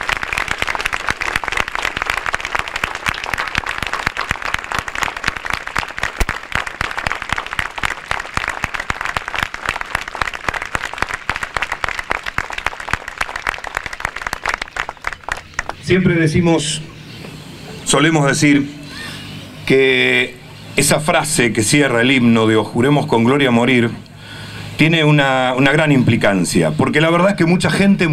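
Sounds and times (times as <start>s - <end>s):
audience applause for war veterans: 0.0s - 15.8s
speech: 15.9s - 16.9s, 17.9s - 18.8s, 19.7s - 24.0s, 24.8s - 28.1s.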